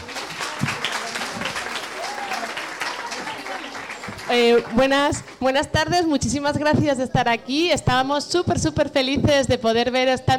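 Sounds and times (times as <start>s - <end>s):
audience applause: 0.0s - 5.4s
speech: 4.3s - 10.3s.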